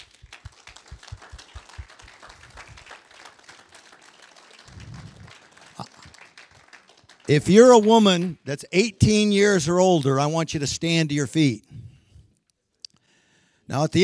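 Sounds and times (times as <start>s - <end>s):
congregation applause: 0.0s - 8.1s
speech: 7.3s - 11.7s, 13.7s - 14.0s.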